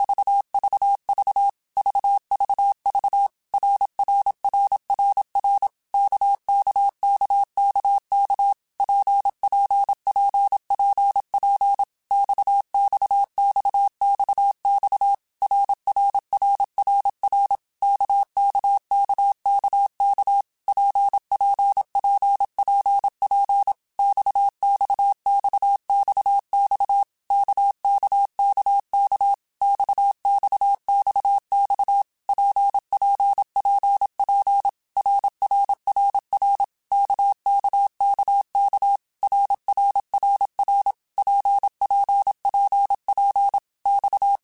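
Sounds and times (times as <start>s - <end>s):
RKPX Morse code beeps: 0.0s - 44.4s.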